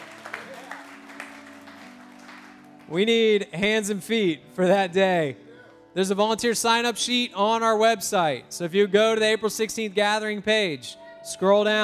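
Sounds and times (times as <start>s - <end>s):
audience round of applause: 0.0s - 2.9s
speech: 2.9s - 5.4s, 6.0s - 11.8s.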